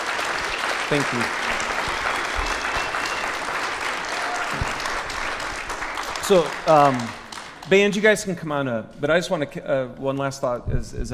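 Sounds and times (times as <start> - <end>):
audience applause: 0.0 - 8.2
speech: 0.9 - 1.6, 6.3 - 11.1.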